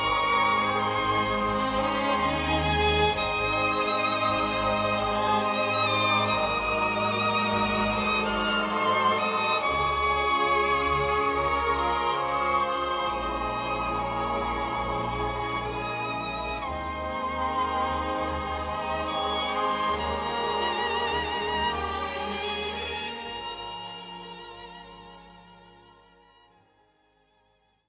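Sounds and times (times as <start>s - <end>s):
violin: 0.0s - 27.5s.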